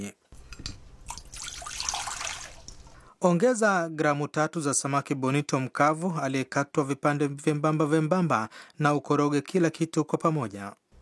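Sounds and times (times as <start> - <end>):
cup of water pouring into a saucepan with soy sauce and sugar: 0.4 - 3.2
speech: 3.2 - 10.8.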